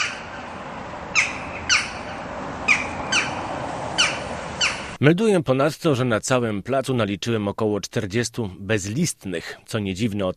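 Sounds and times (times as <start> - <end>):
shrill screeching of birds in a square: 0.0 - 5.0
speech: 5.0 - 10.3.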